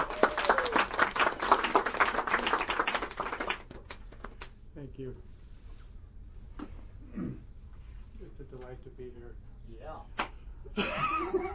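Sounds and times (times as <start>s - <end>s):
audience applause welcoming a guest speaker: 0.0s - 4.4s
speech: 5.0s - 5.3s, 8.5s - 11.5s
laughter: 10.8s - 11.5s.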